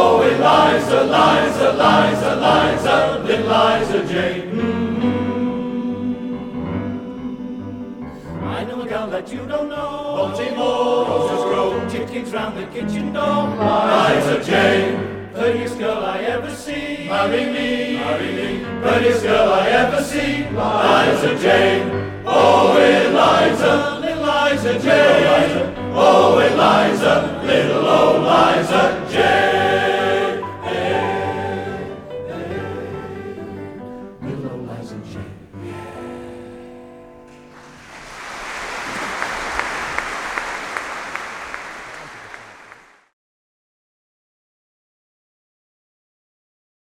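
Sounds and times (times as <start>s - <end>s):
male voice choir singing: 0.0s - 36.8s.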